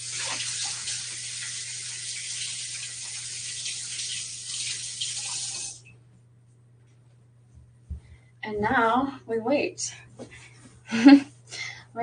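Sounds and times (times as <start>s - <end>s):
running tap water: 0.0s - 5.9s
speech: 8.5s - 10.1s, 10.9s - 11.3s.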